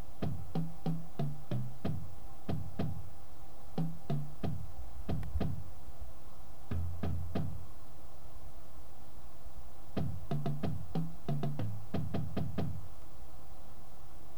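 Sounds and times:
bass: 0.0s - 3.1s, 3.8s - 5.7s, 6.7s - 7.7s, 10.0s - 12.9s.

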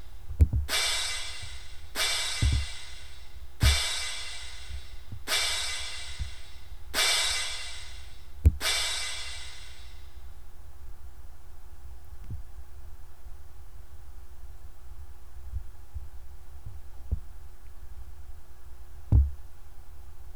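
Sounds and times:
cymbals: 0.7s - 10.2s.

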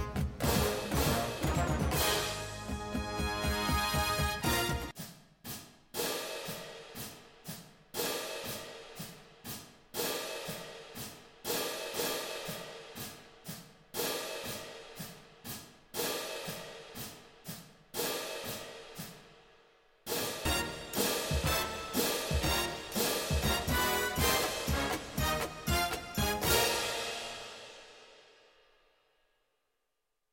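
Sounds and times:
drumline playing: 0.0s - 5.1s, 20.1s - 27.6s
cymbals: 0.0s - 19.5s, 20.1s - 29.0s
music: 0.0s - 29.4s.

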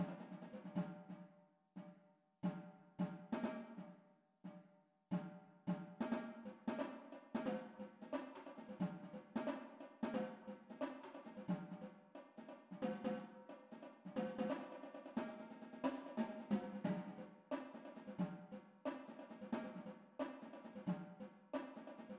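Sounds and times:
tenor drums: 0.0s - 22.1s.

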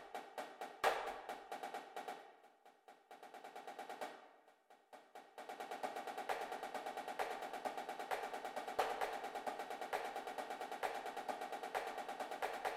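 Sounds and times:
snare drumline: 0.0s - 2.2s, 5.4s - 12.7s.

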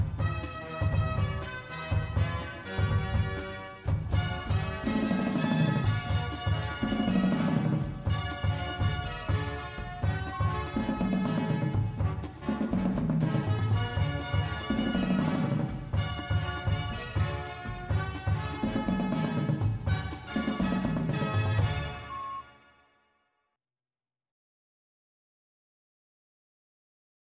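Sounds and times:
bass: 0.0s - 22.2s
music: 0.0s - 23.5s.

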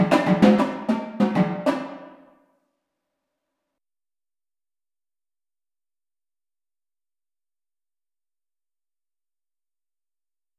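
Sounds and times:
drumline: 0.0s - 2.2s.

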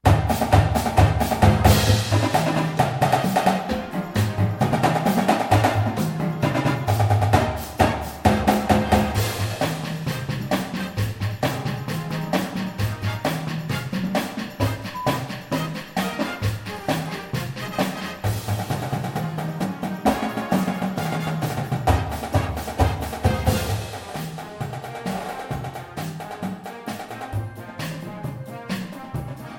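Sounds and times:
full drumline: 0.0s - 29.5s
music: 0.0s - 29.5s.

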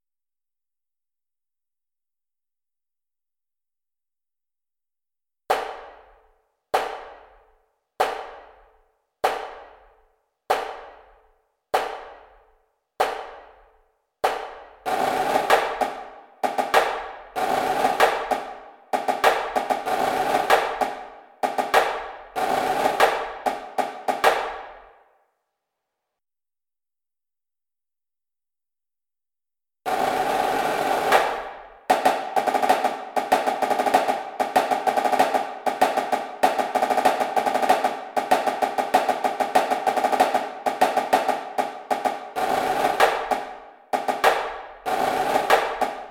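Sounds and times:
snare drumline: 5.5s - 11.2s, 11.8s - 13.6s, 14.2s - 25.0s, 29.9s - 46.0s.

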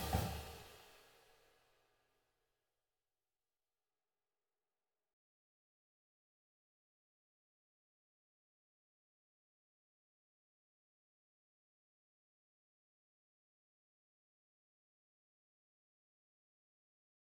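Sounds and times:
drumline playing a cadence: 0.0s - 0.9s.

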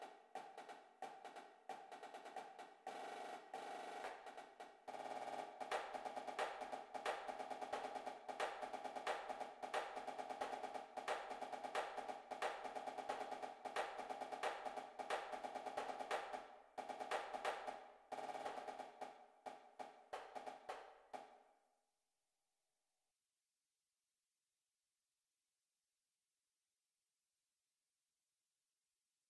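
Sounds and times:
snare drum: 0.0s - 21.4s.

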